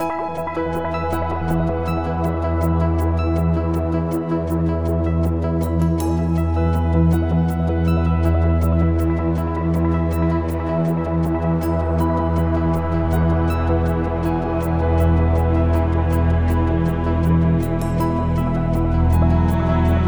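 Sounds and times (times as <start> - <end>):
joyful ambient music: 0.0 - 20.0.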